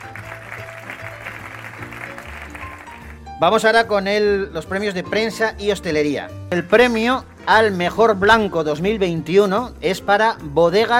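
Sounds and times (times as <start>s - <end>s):
audience applause: 0.0s - 3.3s
speech: 3.4s - 10.9s.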